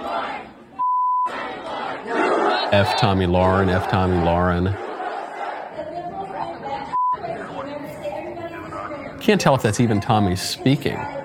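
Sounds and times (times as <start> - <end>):
censor bleep: 0.8 - 1.3, 6.9 - 7.2
laughter: 1.7 - 6.0
agitated mob shouting and screaming outside a door: 2.0 - 5.3
speech: 2.7 - 4.8, 9.3 - 11.2.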